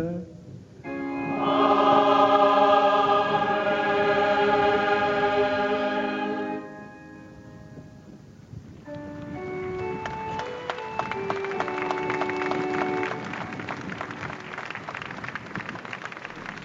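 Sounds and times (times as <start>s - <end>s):
sustained musical tones: 0.8s - 8.2s, 9.0s - 14.4s
crowd applause: 10.4s - 16.6s.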